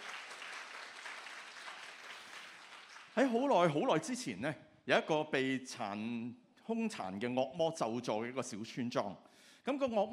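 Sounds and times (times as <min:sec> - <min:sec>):
church congregation applauding during worship: 0:00.0 - 0:03.2
speech: 0:03.2 - 0:10.1.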